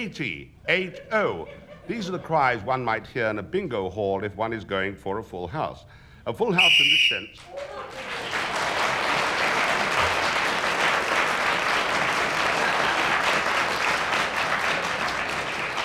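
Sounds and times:
speech: 0:00.0 - 0:08.1
laughter: 0:00.6 - 0:03.2, 0:07.4 - 0:10.5, 0:11.8 - 0:15.8
sustained audience applause: 0:07.4 - 0:15.8.

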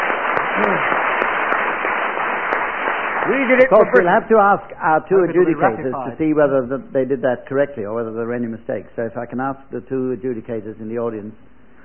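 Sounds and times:
audience applause: 0:00.0 - 0:04.2
speech: 0:00.6 - 0:01.0, 0:03.3 - 0:11.5.

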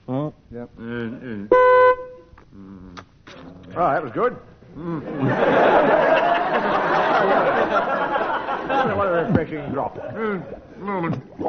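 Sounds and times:
speech: 0:00.5 - 0:02.8, 0:03.8 - 0:06.0, 0:08.7 - 0:11.4
game show buzzer: 0:01.5 - 0:02.2
laughter: 0:04.8 - 0:10.7.

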